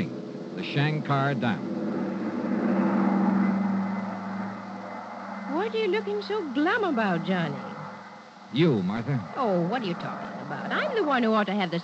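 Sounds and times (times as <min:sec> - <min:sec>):
huge private twin-engine airplane in flight: 0:00.1 - 0:08.1
speech: 0:00.6 - 0:01.7, 0:05.6 - 0:07.7, 0:08.5 - 0:11.8.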